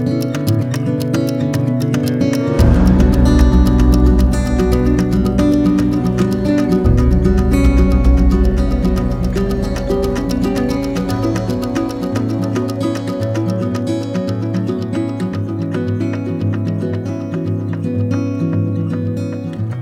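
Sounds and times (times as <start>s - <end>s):
dramatic folk music: 0.2s - 19.7s.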